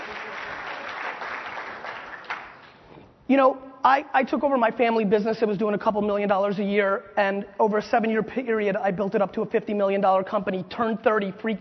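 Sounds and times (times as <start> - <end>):
applause: 0.0 - 2.9
speech: 3.3 - 11.5.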